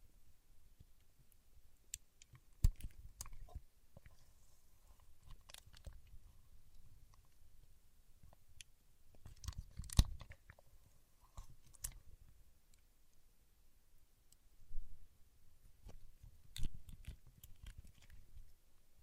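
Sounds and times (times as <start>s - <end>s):
soft low crackling and rustling: 0.0s - 13.4s, 14.2s - 19.0s
paraffin wax being peeled, tapped and scratched: 1.9s - 4.2s, 5.2s - 7.4s, 8.2s - 10.6s, 15.8s - 18.5s.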